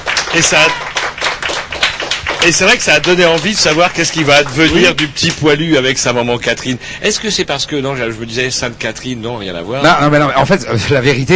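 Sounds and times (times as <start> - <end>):
crowd applause: 0.0 - 5.4
speech: 0.4 - 1.0, 2.4 - 11.3.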